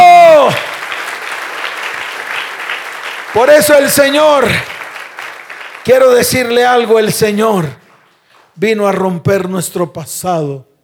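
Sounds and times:
audience applause: 0:00.0 - 0:08.5
speech: 0:03.4 - 0:04.7, 0:05.8 - 0:07.8, 0:08.6 - 0:10.7.

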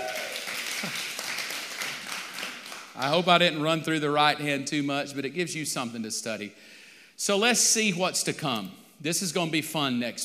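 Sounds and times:
audience clapping: 0:00.0 - 0:03.2
speech: 0:00.8 - 0:01.1, 0:03.0 - 0:10.2.

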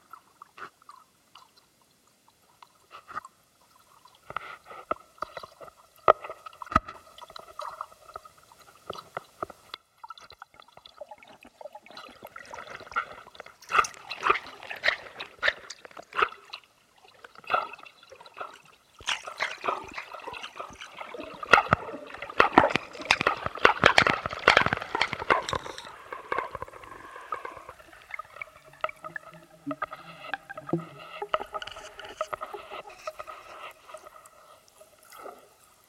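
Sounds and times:
underwater bubbling and gurgling trickles recorded by hydrophone: 0:00.0 - 0:35.8
underwater clicks recorded by hydrophone: 0:12.8 - 0:16.6, 0:17.3 - 0:34.5.

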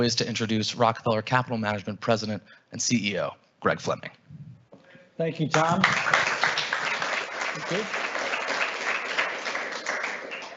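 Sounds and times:
speech: 0:00.0 - 0:04.4, 0:05.2 - 0:06.2, 0:07.6 - 0:08.0
audience applause at a live event for a capital management firm: 0:05.5 - 0:10.5.

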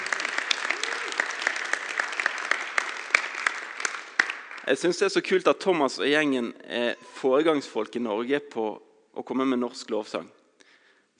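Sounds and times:
audience applause: 0:00.0 - 0:04.8
speech: 0:04.7 - 0:10.4.

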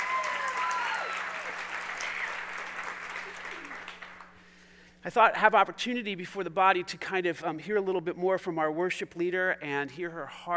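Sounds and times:
congregation applause welcoming a worship leader: 0:00.0 - 0:04.4
speech: 0:05.0 - 0:10.5.

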